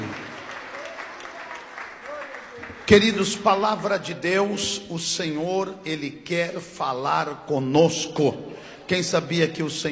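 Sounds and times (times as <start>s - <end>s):
church congregation clapping during worship: 0.0s - 4.4s
speech: 2.9s - 9.9s.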